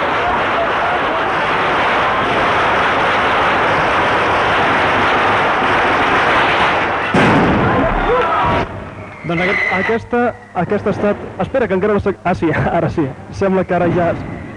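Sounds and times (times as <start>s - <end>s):
traca firecracker string exploding: 0.0s - 14.5s
speech: 9.3s - 14.4s.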